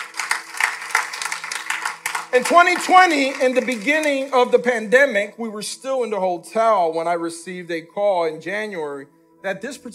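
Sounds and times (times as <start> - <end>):
crowd clapping: 0.0 - 4.9
speech: 2.3 - 9.9.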